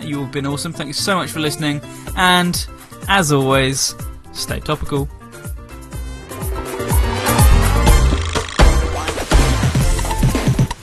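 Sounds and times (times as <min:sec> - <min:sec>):
speech: 0:00.1 - 0:05.2
Commodore 64 chiptune track with buzzy synth tones and busy bassline: 0:05.0 - 0:10.7.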